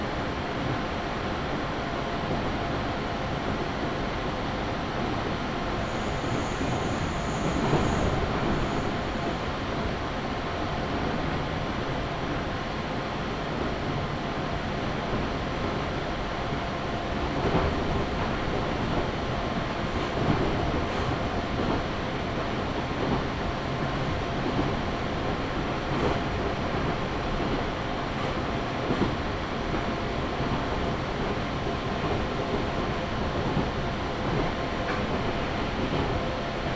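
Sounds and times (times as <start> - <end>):
Chūō West Line train running from Jūnikane toward Kiso-Fukushima: 0.0 - 36.7
rail clicks and knocks: 34.3 - 36.2.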